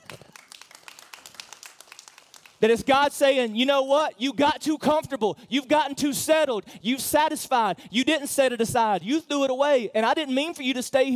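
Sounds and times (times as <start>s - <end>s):
audience clapping: 0.0s - 2.9s
speech: 2.6s - 11.1s.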